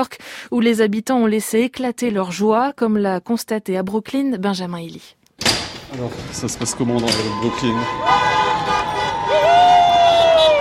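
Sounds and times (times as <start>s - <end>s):
speech: 0.0s - 8.8s
crowd cheering at a street celebration in Brooklyn, New York: 6.8s - 10.5s
car horns honking in Brooklyn: 7.2s - 10.5s.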